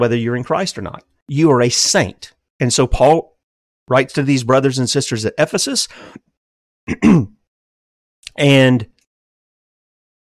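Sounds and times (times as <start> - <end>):
speech: 0.0 - 3.3, 3.9 - 6.3, 6.9 - 7.4, 8.3 - 8.9
person clearing throat: 6.9 - 7.4.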